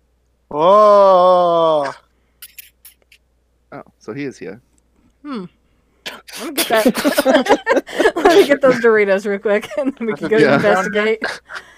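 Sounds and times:
speech: 0.5 - 1.1, 4.0 - 4.7, 5.3 - 5.6, 6.5 - 11.6
man screaming: 0.5 - 2.0
laughter: 6.5 - 11.7.

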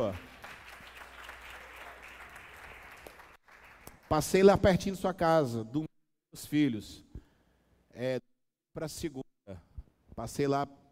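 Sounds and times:
audience applause: 0.0 - 4.0
speech: 4.1 - 7.1, 8.0 - 10.8.

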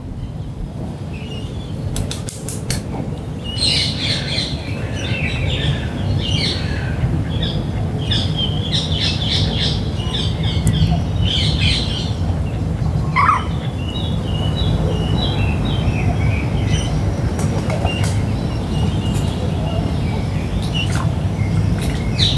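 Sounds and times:
low rumble of traffic: 0.0 - 22.3
birds chirping and singing at dawn in Parco Sempione: 3.5 - 22.3.

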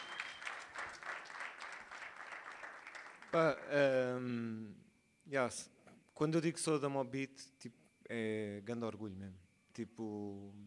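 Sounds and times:
audience applause: 0.0 - 3.6
speech: 3.3 - 10.6.

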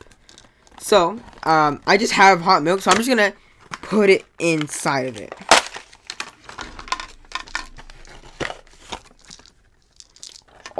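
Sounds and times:
marshmallows rattling inside crinkly plastic packaging: 0.0 - 10.7
speech: 0.9 - 5.5.

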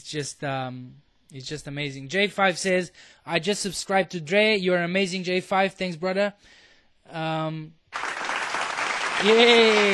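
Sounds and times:
speech: 0.0 - 8.1, 9.2 - 9.9
applause sound effect: 7.9 - 9.9.

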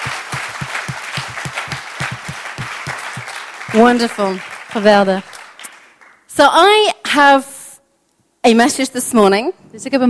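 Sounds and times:
audience applause: 0.0 - 6.2
speech: 3.7 - 5.3, 6.4 - 7.5, 8.4 - 10.0.

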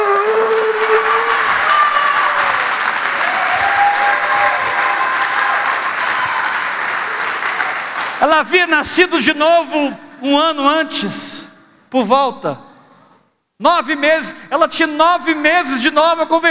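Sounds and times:
audience applause: 0.0 - 8.2
speech: 8.3 - 12.6, 13.6 - 16.4.

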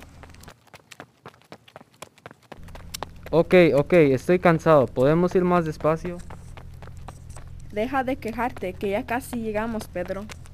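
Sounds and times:
footsteps of two friends running: 0.0 - 10.5
speech: 3.3 - 6.3, 7.7 - 10.4.

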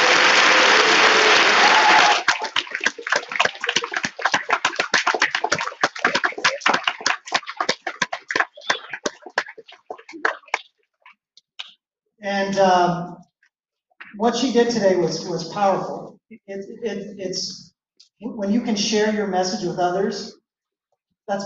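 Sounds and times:
audience applause: 0.0 - 10.7
speech: 12.5 - 13.2, 14.2 - 17.6, 18.2 - 20.4, 21.3 - 21.4.

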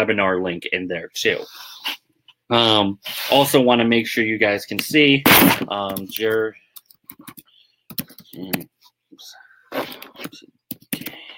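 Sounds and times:
speech: 0.0 - 7.4, 8.3 - 10.5
typing on a computer keyboard: 5.9 - 8.6, 10.7 - 11.2.

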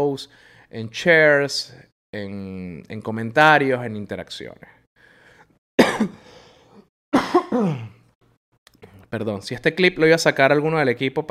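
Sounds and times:
speech: 0.0 - 4.8, 6.0 - 6.2, 7.5 - 7.9, 9.1 - 11.2
harsh cough: 5.8 - 6.4, 7.1 - 8.0.

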